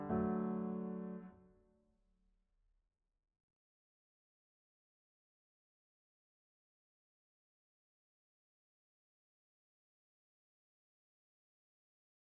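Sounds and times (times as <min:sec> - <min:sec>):
electric piano: 0:00.0 - 0:01.4.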